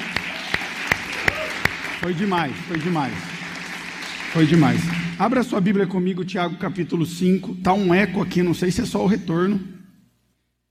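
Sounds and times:
audience applauding: 0.0s - 5.5s
speech: 2.0s - 3.4s, 4.4s - 9.8s.

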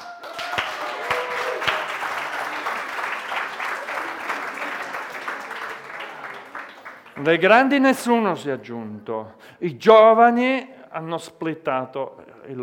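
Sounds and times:
audience applause: 0.0s - 7.7s
speech: 7.2s - 12.6s.

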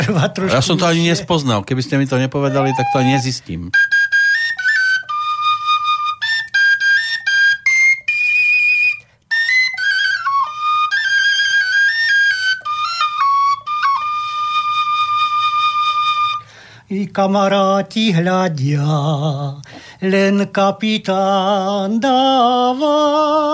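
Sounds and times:
speech: 0.1s - 4.0s, 17.1s - 23.5s
small Slovak folk pipe playing a lively solo melody: 2.3s - 16.6s.

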